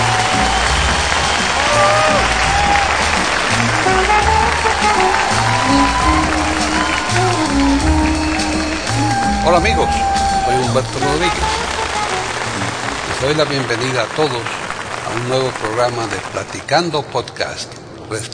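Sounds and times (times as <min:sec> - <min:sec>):
voices shouting: 0:00.0 - 0:13.4
crowd cheering and whooping: 0:00.0 - 0:15.9
crowd applauding: 0:00.0 - 0:17.7
speech: 0:09.5 - 0:11.6, 0:13.2 - 0:18.3.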